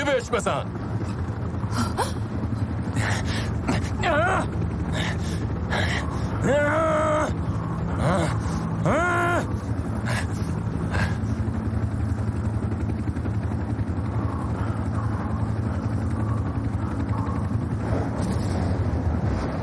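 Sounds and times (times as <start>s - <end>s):
roaring stormy wind with low rumble: 0.0s - 19.6s.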